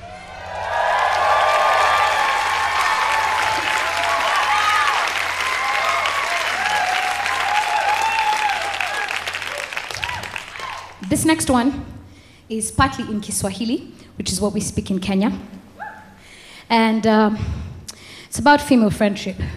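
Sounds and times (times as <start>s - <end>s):
audience applause: 0.0s - 11.0s
people cheering: 0.0s - 11.1s
speech: 11.2s - 11.9s, 12.5s - 15.5s, 16.7s - 17.6s, 18.3s - 19.5s.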